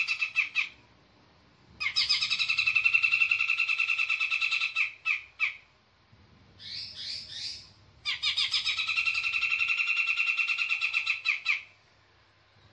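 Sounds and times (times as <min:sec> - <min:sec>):
Sumatran cucak jenggot bird singing: 0:00.0 - 0:00.8, 0:01.8 - 0:05.7, 0:06.6 - 0:11.8.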